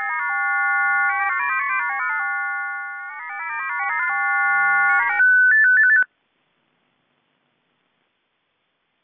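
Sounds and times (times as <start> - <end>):
80-tone 10 baud hybrid MFSK radio waveform: 0.0 - 6.1.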